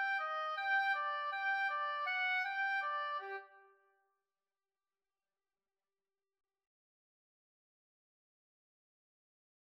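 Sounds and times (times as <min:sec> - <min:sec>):
oboe duet: 0:00.0 - 0:03.6.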